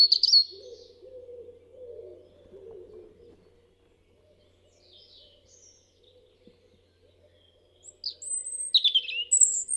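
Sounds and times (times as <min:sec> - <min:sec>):
European robin Erithacus rubecula singing: 0:00.0 - 0:00.9, 0:04.3 - 0:09.7.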